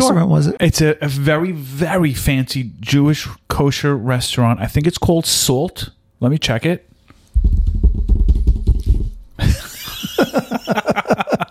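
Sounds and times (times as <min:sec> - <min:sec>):
speech: 0:00.0 - 0:07.5
fingers drumming on a table: 0:07.4 - 0:09.4
laughter: 0:09.4 - 0:11.5.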